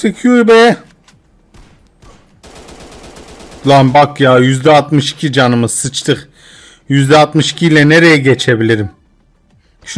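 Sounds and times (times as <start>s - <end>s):
speech: 0.0s - 0.9s, 3.6s - 6.3s, 6.9s - 9.0s
automatic gunfire in a video game: 1.5s - 4.0s.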